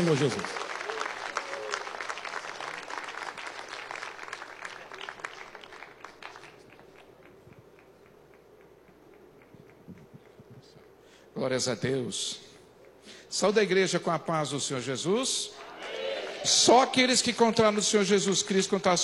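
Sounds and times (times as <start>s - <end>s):
speech: 0.0s - 0.7s, 11.4s - 12.5s, 13.3s - 15.6s, 16.4s - 19.0s
audience applauding: 0.0s - 10.5s, 15.6s - 17.7s.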